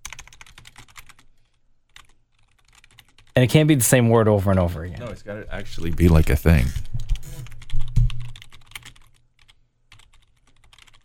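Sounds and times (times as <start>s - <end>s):
computer keyboard typing with backspacing: 0.0s - 3.4s, 4.6s - 11.0s
speech: 3.4s - 7.0s
heavier thumps: 7.8s - 8.4s.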